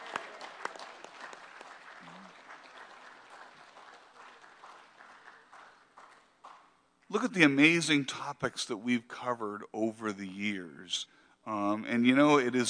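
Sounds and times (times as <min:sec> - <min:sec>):
audience applause: 0:00.0 - 0:06.7
speech: 0:07.1 - 0:12.6.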